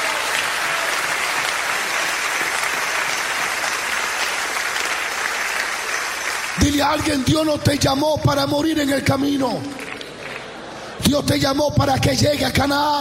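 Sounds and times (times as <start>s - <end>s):
audience applause: 0.0s - 7.3s, 9.8s - 10.8s
speech: 6.6s - 9.9s, 11.0s - 12.9s.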